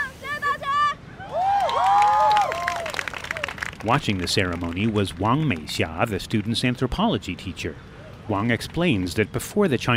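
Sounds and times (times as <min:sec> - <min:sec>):
classmates cheering and crying out at a ceremony: 0:00.7 - 0:03.5
speech: 0:03.8 - 0:09.9.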